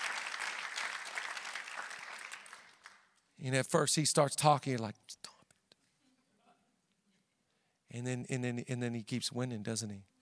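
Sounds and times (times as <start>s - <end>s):
audience clapping: 0.0s - 3.2s
speech: 3.4s - 5.3s, 8.0s - 10.1s.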